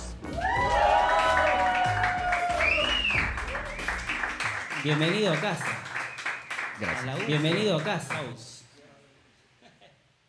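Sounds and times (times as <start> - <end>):
audience applause: 0.4 - 8.4
speech: 4.8 - 5.8, 6.8 - 8.5.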